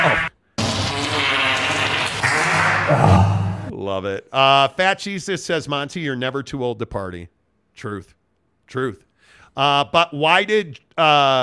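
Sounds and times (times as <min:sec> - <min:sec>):
fart noise: 0:00.0 - 0:03.7
speech: 0:03.9 - 0:11.4.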